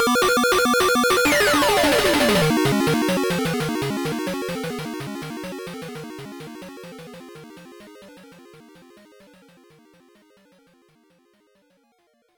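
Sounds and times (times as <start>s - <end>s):
game boss music: 0.0s - 4.0s.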